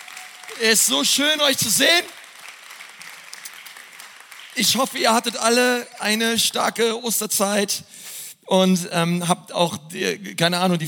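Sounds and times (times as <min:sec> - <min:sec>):
crowd applauding: 0:00.0 - 0:06.6
speech: 0:00.5 - 0:02.2, 0:04.6 - 0:10.8.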